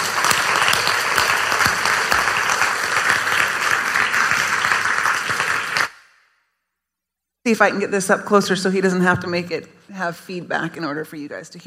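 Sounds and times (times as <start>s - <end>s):
audience applause: 0.0s - 6.0s
speech: 7.5s - 11.6s.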